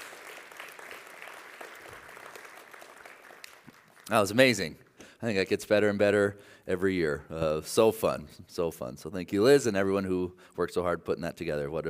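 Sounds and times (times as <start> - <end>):
crowd clapping: 0.0 - 4.6
speech: 4.1 - 11.8.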